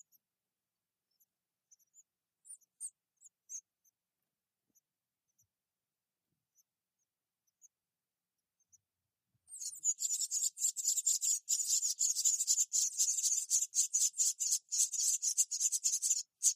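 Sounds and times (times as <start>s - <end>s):
wren giving dry high ticking calls: 9.5s - 16.5s.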